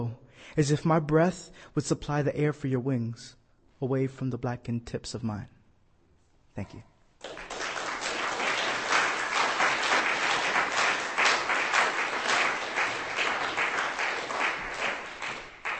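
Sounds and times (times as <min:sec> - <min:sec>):
speech: 0:00.5 - 0:05.6, 0:06.6 - 0:06.9
audience applause at a poetry reading: 0:07.2 - 0:15.7.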